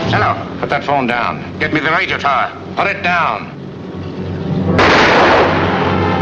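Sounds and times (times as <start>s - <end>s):
speech: 0.1s - 3.5s
gunshot in a film scene: 4.8s - 6.1s.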